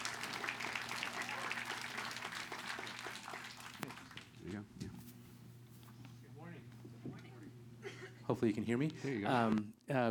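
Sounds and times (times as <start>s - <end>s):
audience clapping: 0.0s - 4.6s
speech: 4.5s - 5.0s, 8.3s - 10.1s.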